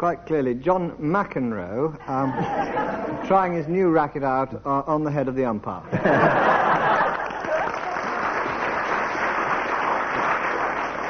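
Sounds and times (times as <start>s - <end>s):
speech: 0.0s - 6.7s
laughter: 2.1s - 3.3s, 5.9s - 8.0s
audience applause: 6.6s - 11.0s.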